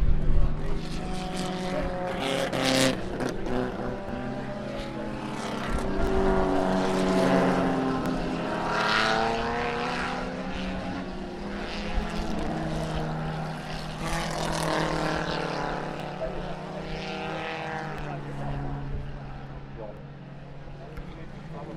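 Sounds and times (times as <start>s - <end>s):
pre-1961 sports car engines: 0.0s - 21.7s.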